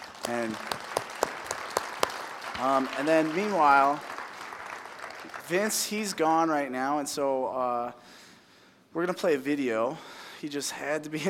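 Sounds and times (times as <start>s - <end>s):
audience applause: 0.0s - 5.9s
speech: 0.3s - 0.9s, 2.6s - 4.1s, 5.5s - 8.2s, 9.0s - 11.2s.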